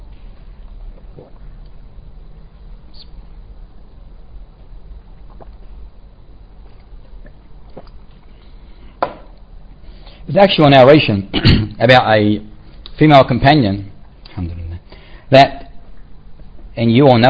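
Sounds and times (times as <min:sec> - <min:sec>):
person drinking water: 0:05.1 - 0:05.9, 0:06.6 - 0:09.0
speech: 0:10.3 - 0:14.6, 0:15.3 - 0:15.6, 0:16.8 - 0:17.2.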